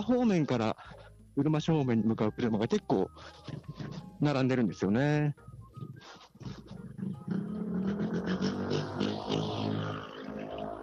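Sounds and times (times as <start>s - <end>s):
speech: 0.0s - 6.9s
motorcycle engine passing on road: 6.9s - 10.8s.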